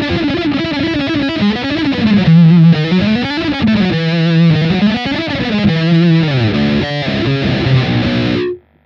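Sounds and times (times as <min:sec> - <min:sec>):
electric guitar through POD HD 500: 0:00.0 - 0:08.8.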